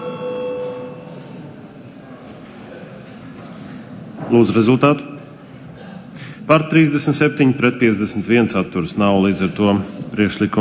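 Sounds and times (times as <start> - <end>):
parliament chamber bell ringing before a vote: 0.0 - 1.4
low hum: 0.0 - 10.5
speech: 4.3 - 5.1, 6.5 - 10.5.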